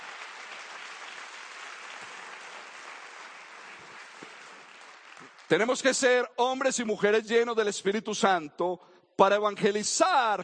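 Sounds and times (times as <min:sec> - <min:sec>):
audience applause: 0:00.0 - 0:05.6
speech: 0:05.5 - 0:10.4.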